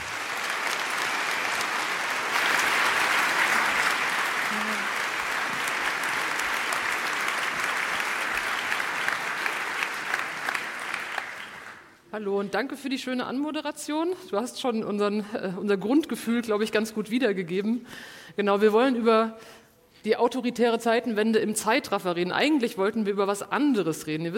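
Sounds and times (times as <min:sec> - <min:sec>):
audience applause: 0:00.0 - 0:12.0
speech: 0:12.2 - 0:24.3.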